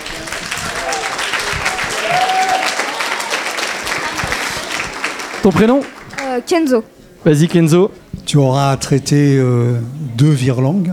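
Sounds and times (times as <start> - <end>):
audience applause: 0.0 - 6.5
speech: 5.4 - 10.9.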